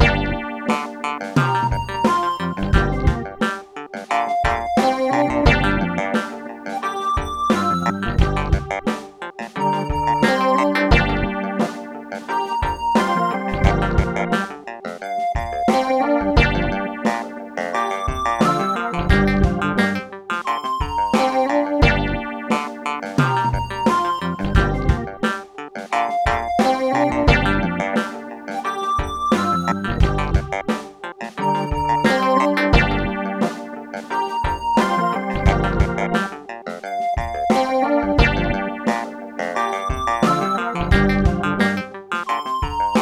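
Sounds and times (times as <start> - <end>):
guitar: 0.0 - 42.9.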